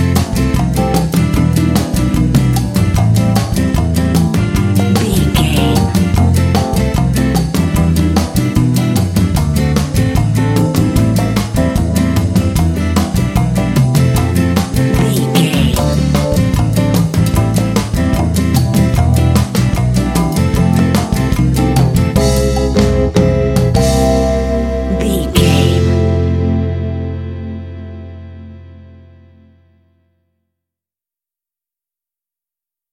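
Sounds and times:
kitschy elevator comedy lounge music bed: 0:00.0 - 0:28.5.

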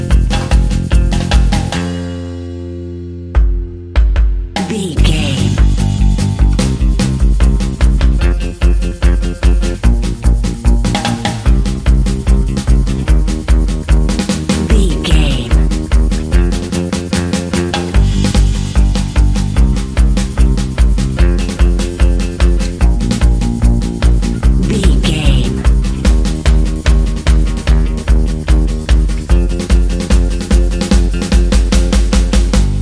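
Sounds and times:
modern European folk dance music: 0:00.0 - 0:01.8, 0:04.6 - 0:32.7.

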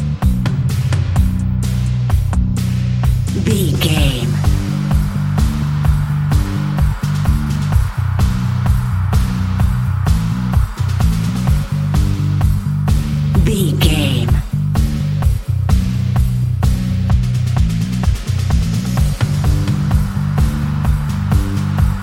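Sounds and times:
bass guitar: 0:00.0 - 0:22.0
drums playing: 0:03.3 - 0:05.0, 0:12.9 - 0:14.9.

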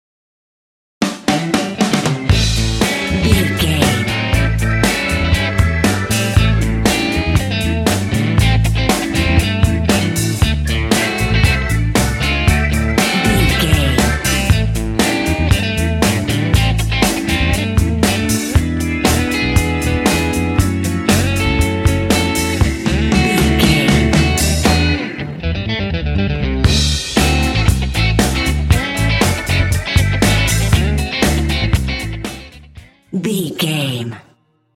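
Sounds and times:
happy major blues music: 0:01.0 - 0:34.2.

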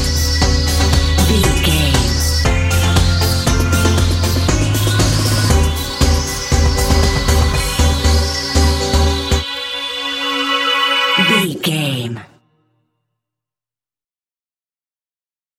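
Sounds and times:
colorful house music: 0:00.0 - 0:12.3.

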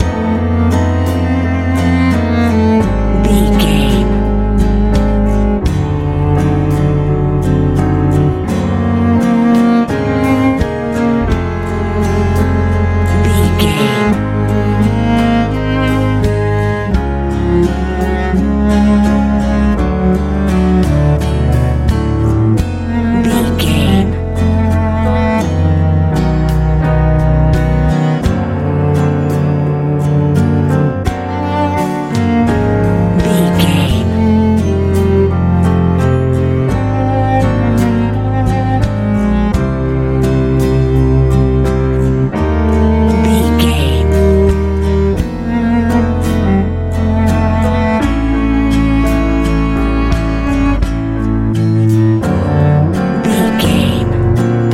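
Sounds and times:
warm bright easy listening pop: 0:00.0 - 0:54.7.

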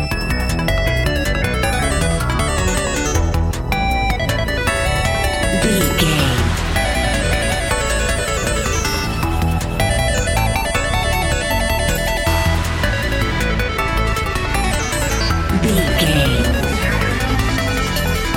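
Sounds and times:
epic video game adventure music: 0:00.0 - 0:18.3.

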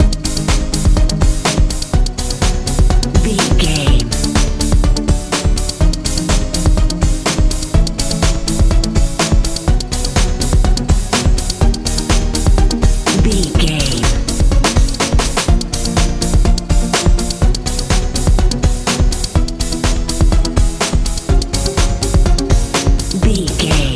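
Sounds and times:
dance pop music: 0:00.0 - 0:23.9.

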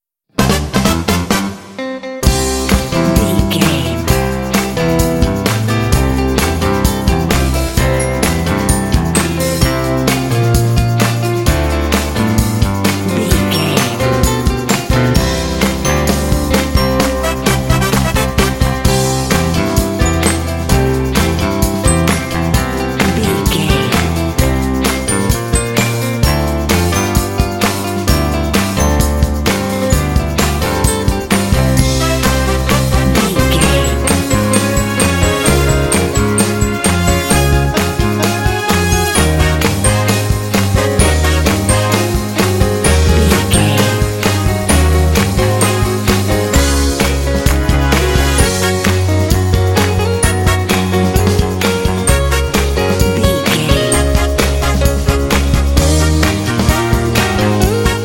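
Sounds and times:
cheesy 1960s TV theme song: 0:00.3 - 0:58.0.

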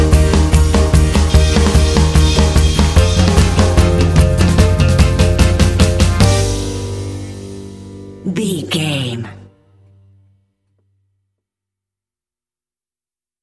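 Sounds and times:
crazy fun polka music bed: 0:00.0 - 0:09.4.

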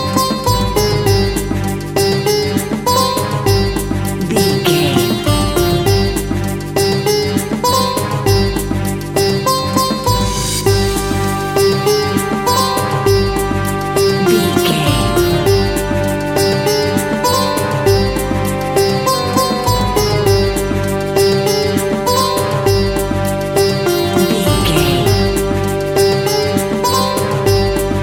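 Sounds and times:
Indian soundscape background world music, groovy and powerful: 0:00.0 - 0:28.0.

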